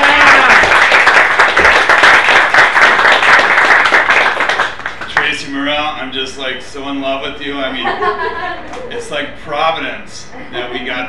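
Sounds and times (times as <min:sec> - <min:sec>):
round of applause: 0:00.0 - 0:05.3
speech: 0:06.4 - 0:11.0
laughter: 0:07.7 - 0:09.1.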